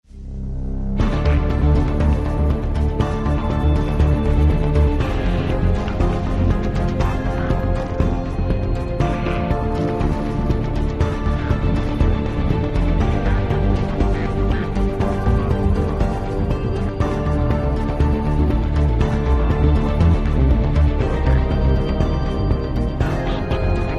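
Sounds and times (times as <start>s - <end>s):
tense music loop: 0.1s - 23.9s.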